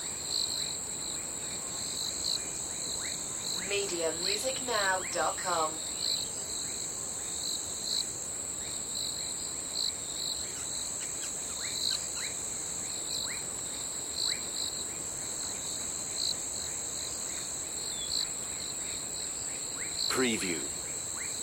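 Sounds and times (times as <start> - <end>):
crickets trilling: 0.0 - 21.4
speech: 3.7 - 5.8.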